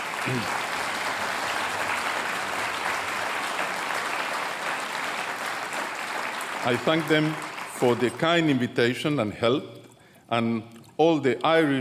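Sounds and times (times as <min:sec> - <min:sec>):
audience applause: 0:00.0 - 0:08.5
speech: 0:00.2 - 0:00.7, 0:06.6 - 0:11.8.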